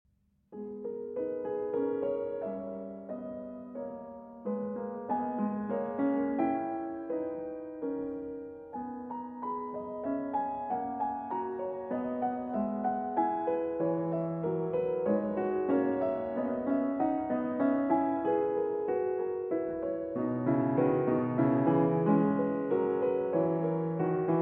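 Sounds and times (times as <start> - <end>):
keyboard prelude in G-sharp minor: 0.6 - 24.4.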